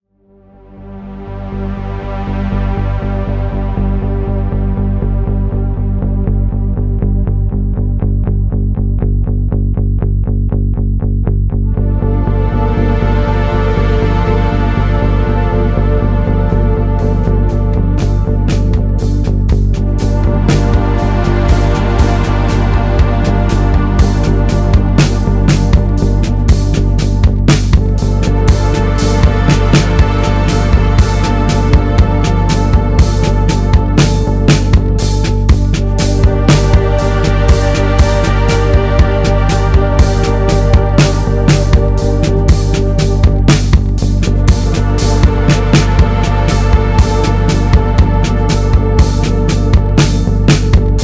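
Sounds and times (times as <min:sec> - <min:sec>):
soundtrack music at 120 bpm: 0:00.2 - 0:10.9, 0:11.5 - 0:51.0.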